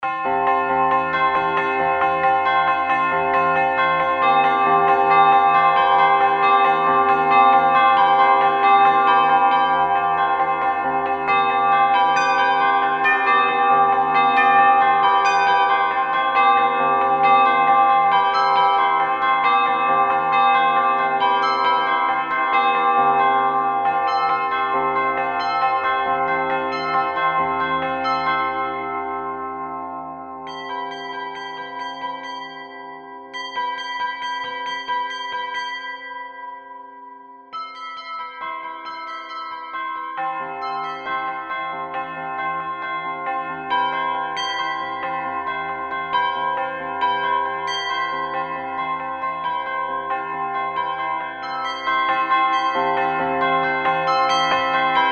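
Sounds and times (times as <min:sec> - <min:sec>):
bells ringing: 0:00.0 - 0:55.1.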